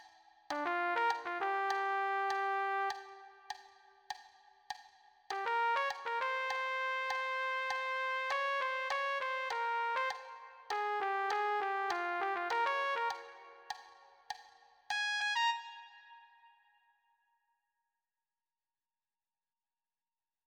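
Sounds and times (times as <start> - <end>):
funk trumpet: 0.5 - 3.7, 5.3 - 14.1, 14.9 - 16.5.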